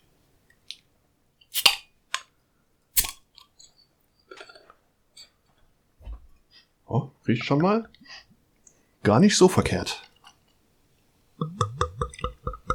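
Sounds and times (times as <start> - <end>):
beer bottle opening with hissing bursts: 1.5 - 1.8, 3.0 - 3.2
speech: 6.9 - 8.0, 9.0 - 10.1.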